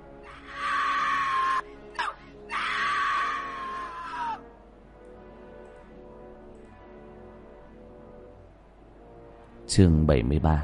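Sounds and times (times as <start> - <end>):
anguished wailing screams: 0.2 - 4.4
speech: 9.7 - 10.6.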